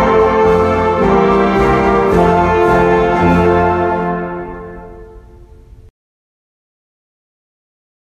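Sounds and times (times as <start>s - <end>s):
instrumental school song: 0.0s - 5.9s.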